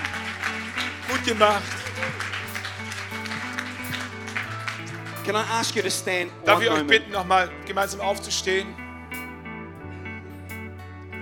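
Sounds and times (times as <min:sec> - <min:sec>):
audience applause: 0:00.0 - 0:06.9
speech: 0:01.2 - 0:02.2, 0:05.3 - 0:08.8.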